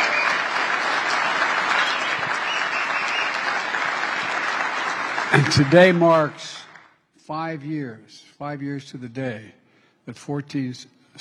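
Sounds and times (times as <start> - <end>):
large audience applauding: 0.0 - 7.0
speech: 5.3 - 6.6, 7.3 - 11.2.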